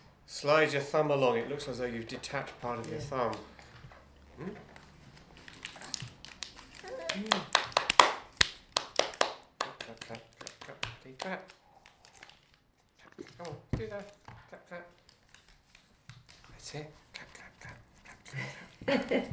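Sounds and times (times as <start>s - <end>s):
speech: 0.3s - 3.5s, 4.4s - 4.7s, 7.1s - 7.5s, 11.1s - 11.6s, 13.2s - 15.0s, 16.6s - 17.0s, 17.6s - 19.3s
hands clapping: 6.0s - 12.0s.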